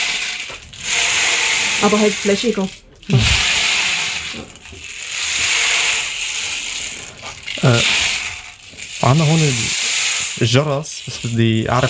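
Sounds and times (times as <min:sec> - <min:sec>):
rainmaker-like percussion instrument: 0:00.0 - 0:11.8
speech: 0:01.8 - 0:03.5, 0:07.7 - 0:08.0, 0:09.0 - 0:09.8, 0:10.4 - 0:11.8.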